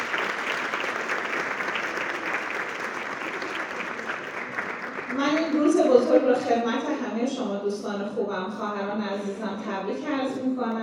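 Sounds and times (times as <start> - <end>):
audience applauding at a celebration for midwives and health workers: 0.0 - 5.9
speech: 5.2 - 10.8.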